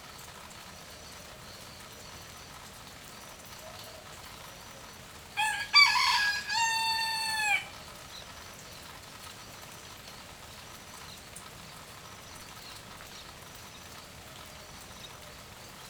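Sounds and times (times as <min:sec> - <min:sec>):
rooster crowing in light rain: 0:05.4 - 0:07.8.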